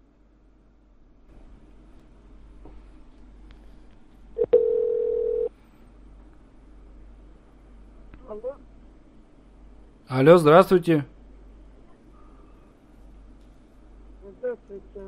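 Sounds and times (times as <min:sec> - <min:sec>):
steady telephone tone as a call is placed: 0:04.4 - 0:05.5
speech: 0:10.1 - 0:11.1.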